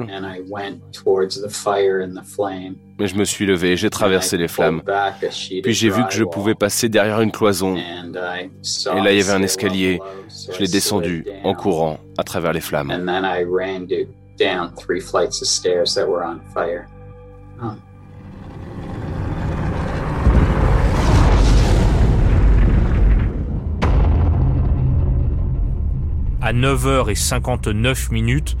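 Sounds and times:
speech: 0.0s - 17.0s, 17.6s - 17.9s, 26.5s - 28.5s
south tower collapsing with a crash: 18.4s - 26.8s.

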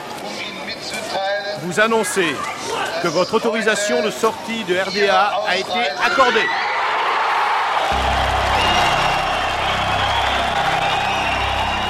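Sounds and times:
speech: 1.2s - 6.6s
cries of joy: 6.3s - 11.8s.

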